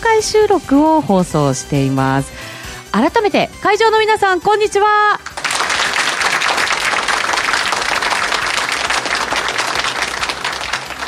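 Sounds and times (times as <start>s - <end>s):
speech: 0.1s - 5.3s
large audience applause: 5.2s - 11.0s.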